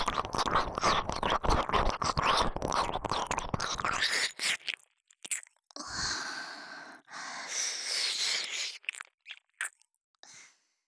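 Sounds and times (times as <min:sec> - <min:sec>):
ASMR ear licking in the right ear: 0:00.0 - 0:05.6, 0:08.1 - 0:09.8.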